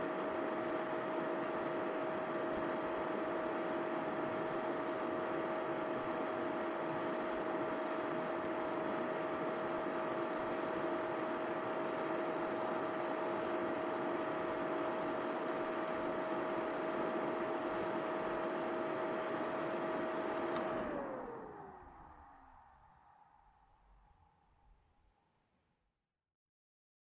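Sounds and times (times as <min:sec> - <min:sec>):
PC operating noise switching on and off: 0:00.0 - 0:22.8.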